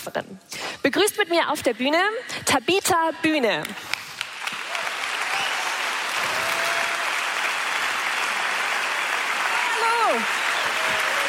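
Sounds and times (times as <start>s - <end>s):
speech: 0.0s - 4.0s, 10.1s - 10.4s
audience applause in a large room: 4.0s - 11.2s.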